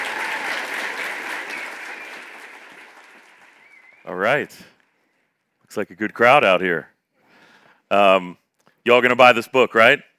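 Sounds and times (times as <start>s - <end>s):
audience applause welcoming speakers: 0.0s - 4.3s
speech: 4.0s - 4.8s, 5.8s - 6.9s, 7.9s - 10.1s.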